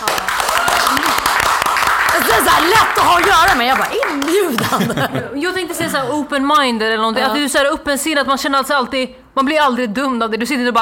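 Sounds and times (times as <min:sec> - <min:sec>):
applause: 0:00.0 - 0:05.0
speech: 0:02.4 - 0:10.8
laughter: 0:04.3 - 0:06.2.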